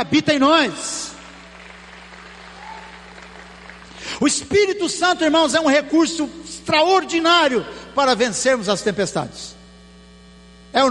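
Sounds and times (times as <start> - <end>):
speech: 0.0 - 1.0, 4.2 - 9.6
church congregation applauding at a family encouragement congress: 0.6 - 4.4.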